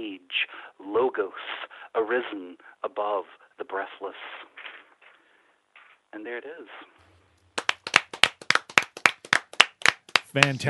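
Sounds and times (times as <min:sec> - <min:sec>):
speech: 0:00.3 - 0:04.7, 0:06.1 - 0:07.0, 0:10.3 - 0:10.6
small audience clapping: 0:07.5 - 0:10.6.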